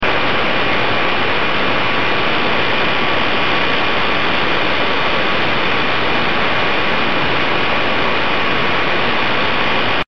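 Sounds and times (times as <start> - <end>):
static: 0.0 - 10.0.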